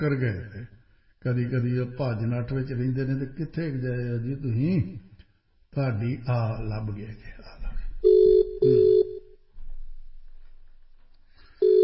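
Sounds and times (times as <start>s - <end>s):
speech: 0.0s - 5.1s, 5.7s - 7.6s
telephone ringback double ring while placing a call: 8.0s - 9.3s, 11.6s - 11.8s.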